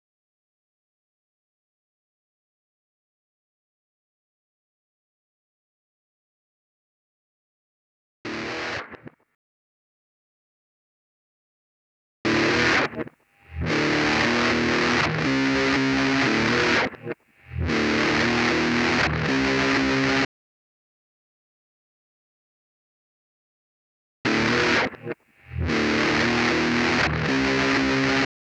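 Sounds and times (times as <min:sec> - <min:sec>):
saturated guitar: 0:08.3 - 0:09.2, 0:12.3 - 0:20.3, 0:24.3 - 0:28.3.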